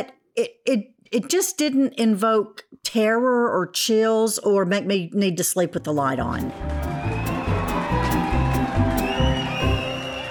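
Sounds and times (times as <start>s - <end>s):
speech: 0.0s - 6.9s
cheering fans sound effect: 6.6s - 10.3s.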